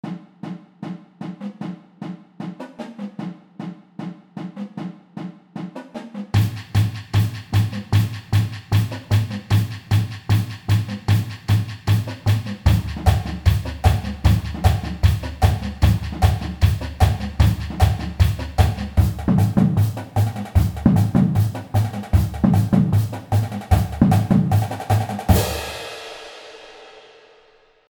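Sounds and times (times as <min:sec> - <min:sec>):
techno music: 0:06.4 - 0:25.2.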